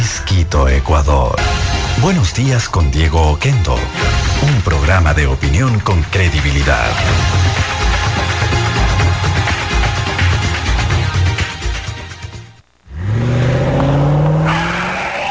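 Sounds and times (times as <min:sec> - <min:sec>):
speech: 0:00.5 - 0:07.8
car engine revving with rising whine: 0:06.7 - 0:12.1, 0:12.9 - 0:15.2
car tires squealing and skidding: 0:13.0 - 0:15.2.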